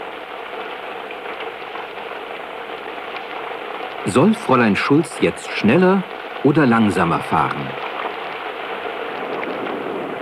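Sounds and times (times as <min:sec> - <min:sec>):
rain falling: 0:00.0 - 0:10.2
speech: 0:04.0 - 0:07.8.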